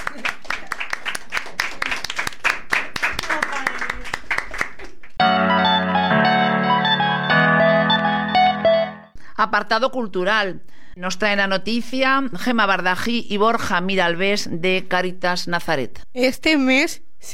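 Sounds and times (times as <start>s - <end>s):
audience applause: 0.0s - 5.2s
steady music: 5.2s - 9.2s
speech: 9.5s - 17.3s.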